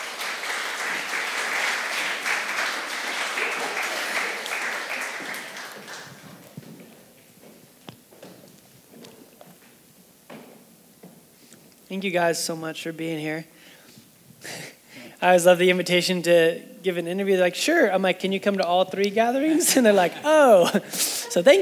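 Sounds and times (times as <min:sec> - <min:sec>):
church congregation applauding a couple welcomed to the stage: 0:00.0 - 0:06.6
speech: 0:11.9 - 0:13.6, 0:15.2 - 0:21.6.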